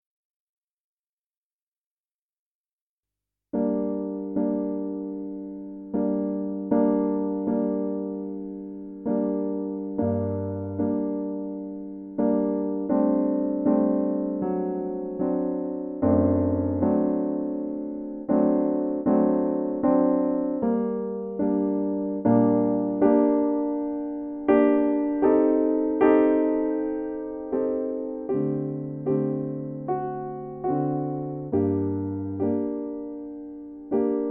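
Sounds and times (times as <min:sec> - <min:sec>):
piano aria: 0:03.5 - 0:34.3.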